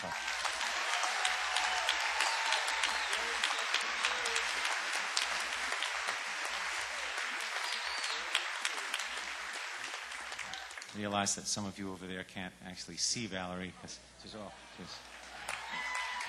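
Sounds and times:
audience applause welcoming a female singer onto a concert stage: 0.0s - 11.1s, 14.5s - 16.2s
speech: 11.0s - 15.1s.

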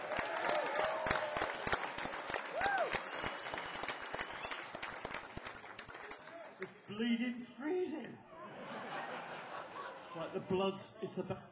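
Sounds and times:
audience applause: 0.0s - 6.8s
speech: 7.0s - 8.3s, 10.2s - 11.5s
laughter: 8.3s - 11.3s.

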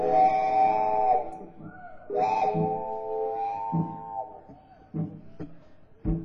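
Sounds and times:
train whistle blowing: 0.0s - 4.7s.

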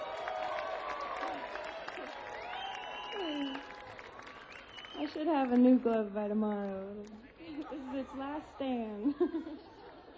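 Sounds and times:
round of applause: 0.0s - 7.8s
speech: 5.1s - 9.8s
laughter: 7.3s - 10.1s.

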